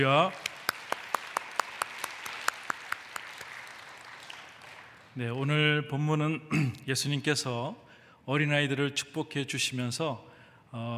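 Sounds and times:
speech: 0:00.0 - 0:00.4, 0:05.2 - 0:10.9
audience applauding: 0:00.0 - 0:05.2.

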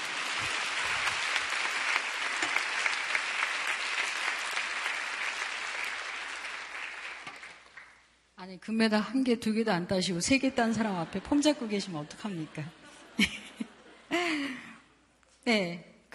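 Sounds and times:
audience applause: 0:00.0 - 0:08.0
speech: 0:08.5 - 0:13.4, 0:15.4 - 0:16.1
laughter: 0:10.6 - 0:14.6.

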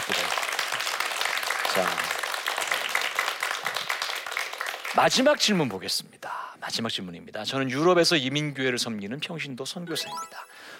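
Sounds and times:
crowd applauding: 0:00.0 - 0:05.0
speech: 0:01.8 - 0:02.0, 0:05.0 - 0:10.5.

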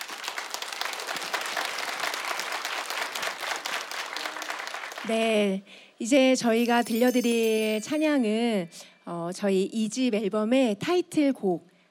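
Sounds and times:
audience applause and cheering: 0:00.0 - 0:05.0
speech: 0:05.0 - 0:11.7.

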